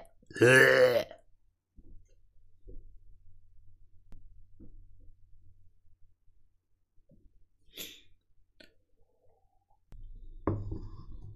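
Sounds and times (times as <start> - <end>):
loud drawn-out croaky burp: 0.3 - 1.2.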